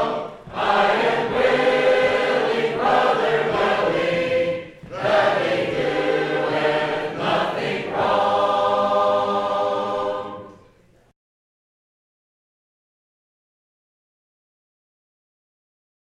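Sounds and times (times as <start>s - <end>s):
sacred harp choir singing: 0.0s - 10.7s.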